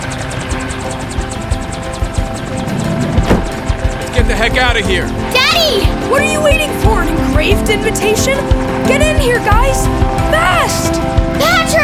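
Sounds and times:
army helicopter rotor blades chopping while hovering: 0.0 - 11.8
speech: 4.4 - 11.8.

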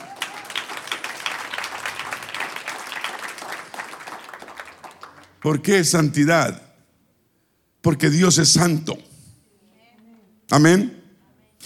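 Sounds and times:
audience applauding: 0.0 - 5.7
speech: 5.4 - 6.6, 7.8 - 9.1, 10.5 - 11.0.

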